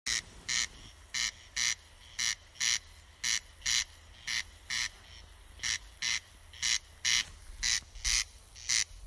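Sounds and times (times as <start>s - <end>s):
Wachtelkoenig calling: 0.1s - 9.0s.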